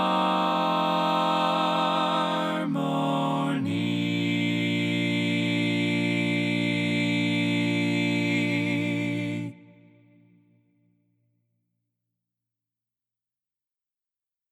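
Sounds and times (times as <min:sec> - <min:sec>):
tenor voice singing in TTBB arrangement: 0:00.0 - 0:10.0.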